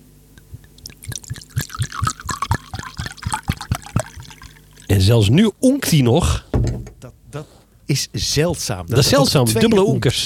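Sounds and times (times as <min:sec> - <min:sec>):
drink pouring into a glass: 0:00.6 - 0:04.9
speech: 0:04.9 - 0:06.4, 0:07.4 - 0:10.2.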